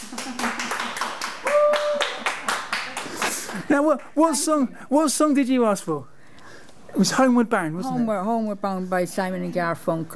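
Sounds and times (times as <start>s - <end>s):
round of applause: 0.0s - 3.7s
speech: 3.7s - 6.1s, 6.9s - 10.1s.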